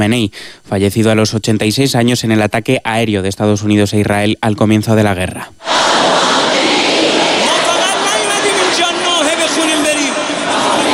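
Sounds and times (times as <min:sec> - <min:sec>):
speech: 0:00.0 - 0:05.7
thousands of people at the Mosalla mosque in Tehran: 0:05.6 - 0:10.9.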